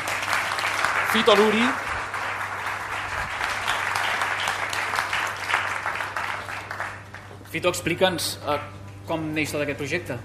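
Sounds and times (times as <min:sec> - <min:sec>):
audience applause: 0:00.0 - 0:07.4
speech: 0:01.1 - 0:01.9, 0:07.5 - 0:10.2.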